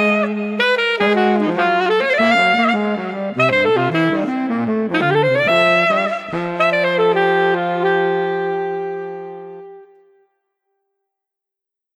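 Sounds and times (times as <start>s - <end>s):
lively street music with baritone and alto: 0.0s - 8.4s.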